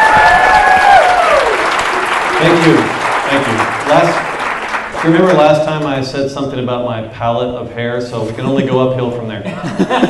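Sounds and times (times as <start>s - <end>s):
audience applause: 0.0s - 6.0s
speech: 2.4s - 4.3s, 5.0s - 10.0s
laughter: 8.2s - 10.0s.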